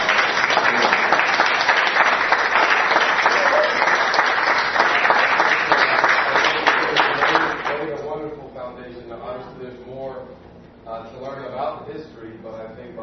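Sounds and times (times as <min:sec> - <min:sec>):
round of applause: 0:00.0 - 0:08.0.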